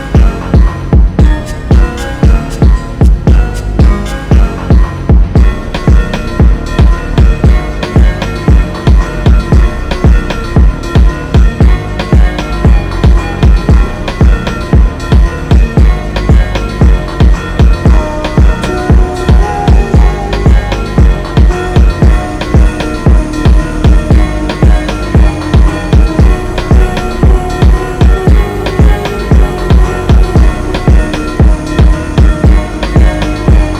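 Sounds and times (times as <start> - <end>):
slowed reverb music: 0.0 - 33.7.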